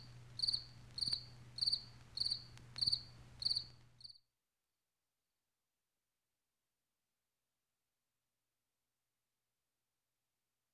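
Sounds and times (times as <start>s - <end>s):
cricket chirps: 0.0s - 4.2s.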